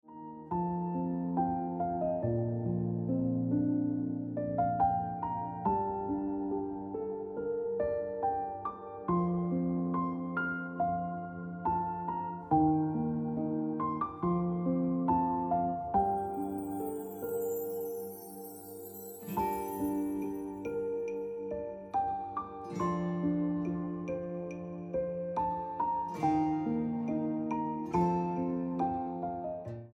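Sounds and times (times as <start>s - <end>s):
piano music: 0.0s - 29.9s.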